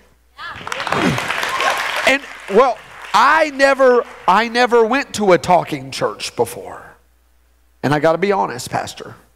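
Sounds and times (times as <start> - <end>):
audience clapping: 0.4 - 5.5
voices calling out and cheering: 0.4 - 5.8
speech: 2.1 - 6.9, 7.8 - 9.2.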